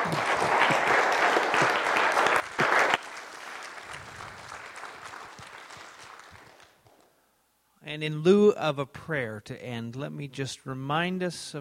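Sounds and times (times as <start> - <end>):
audience applause: 0.0 - 7.0
speech: 8.0 - 11.6.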